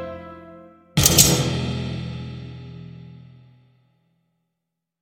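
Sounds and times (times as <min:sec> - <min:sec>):
instrumental crime background music without words: 0:01.0 - 0:03.2.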